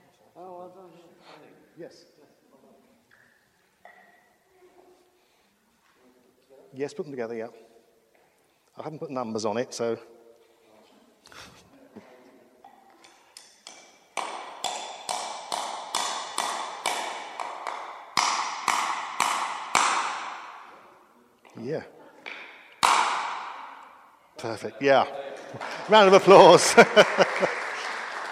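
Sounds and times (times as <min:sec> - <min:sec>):
speech: 0:01.8 - 0:02.3, 0:06.7 - 0:07.7, 0:08.8 - 0:10.2, 0:24.4 - 0:27.6
hammer driving a nail into wood: 0:13.4 - 0:20.6, 0:22.3 - 0:23.6
laughter: 0:25.3 - 0:28.3.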